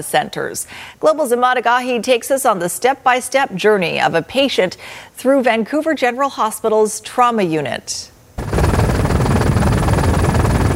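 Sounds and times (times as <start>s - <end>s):
speech: 0.0s - 8.1s
medical helicopter rotor chop and engine whine: 8.4s - 10.7s.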